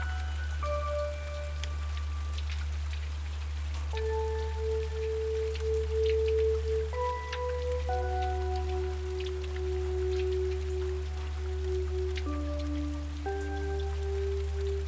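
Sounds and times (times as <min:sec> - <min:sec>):
gentle sustained tones: 0:00.0 - 0:14.8
rain falling: 0:00.0 - 0:14.8.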